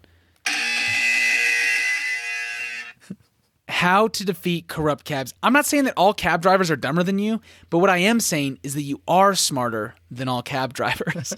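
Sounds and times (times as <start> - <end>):
loud harsh electronic buzzer: 0.4 - 3.0
speech: 3.8 - 11.3
laughter: 10.9 - 11.3.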